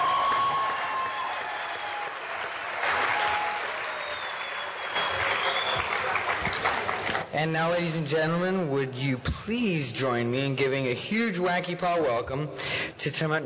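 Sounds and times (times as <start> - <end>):
audience applause for a speaker at a gathering: 0.0 - 7.3
speech: 7.4 - 13.4.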